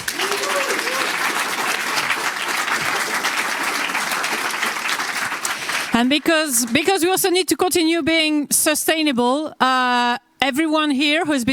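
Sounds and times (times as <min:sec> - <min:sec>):
conference audience applause: 0:00.0 - 0:06.9
speech: 0:06.0 - 0:11.5.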